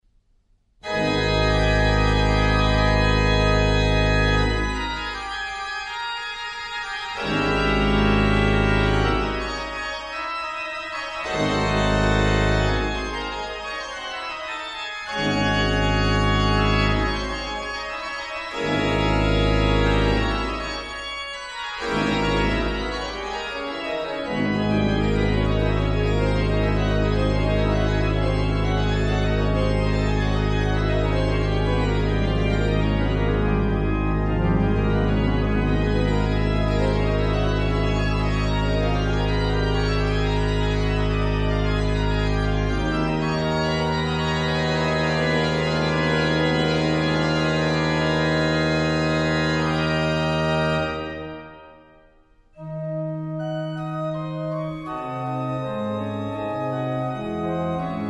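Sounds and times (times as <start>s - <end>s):
fugue music in G minor: 0.8s - 58.0s.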